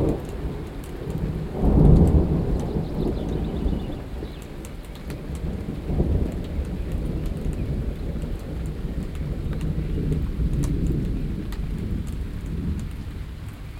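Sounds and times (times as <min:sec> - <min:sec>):
steady rain: 0:00.0 - 0:13.7
thunder rolling: 0:00.0 - 0:13.7.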